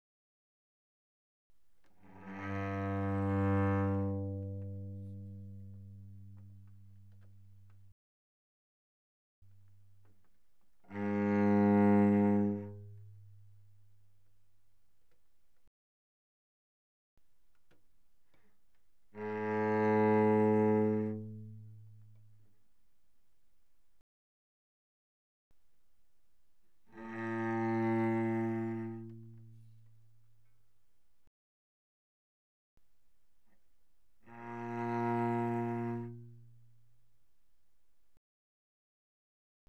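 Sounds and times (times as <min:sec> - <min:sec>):
cello bowed very softly on the G string: 0:01.8 - 0:07.9, 0:09.5 - 0:15.2, 0:17.6 - 0:22.8, 0:26.8 - 0:30.3, 0:34.2 - 0:37.1.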